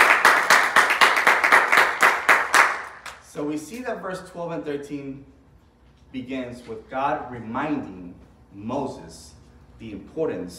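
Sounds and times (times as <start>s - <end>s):
crowd applause: 0.0s - 3.0s
speech: 3.4s - 5.4s, 6.1s - 10.5s.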